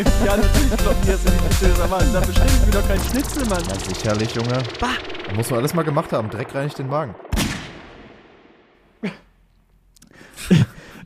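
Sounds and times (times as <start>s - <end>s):
laughter: 0.0s - 4.0s, 10.4s - 10.8s
speech: 0.0s - 7.2s, 9.0s - 9.2s
person coughing after choking: 9.0s - 9.3s.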